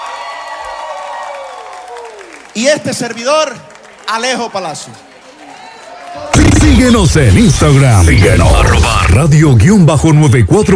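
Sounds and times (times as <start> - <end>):
audience clapping and cheering on a radio show: 0.0 - 6.4
speech: 2.6 - 5.1, 6.1 - 10.7.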